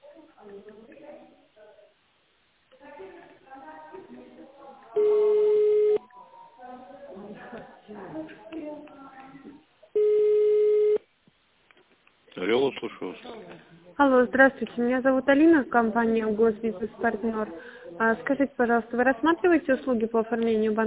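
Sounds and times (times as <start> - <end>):
telephone ringback tone while waiting for operator: 5.0 - 6.6, 10.0 - 11.0
speech: 13.0 - 20.8.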